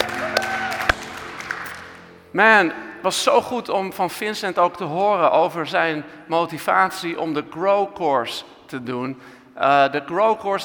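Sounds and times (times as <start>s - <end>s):
audience applause: 0.0s - 2.2s
speech: 2.3s - 10.6s.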